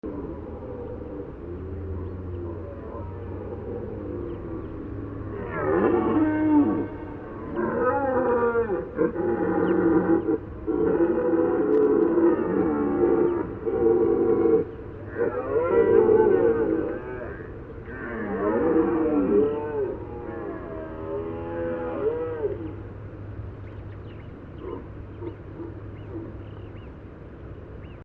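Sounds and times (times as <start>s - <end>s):
deer rutting bellow: 1.6s - 22.8s.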